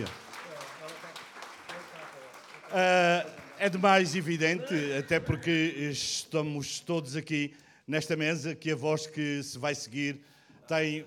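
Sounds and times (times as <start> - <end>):
speech: 0.0 - 0.2, 2.7 - 11.0
audience applause: 0.0 - 5.0.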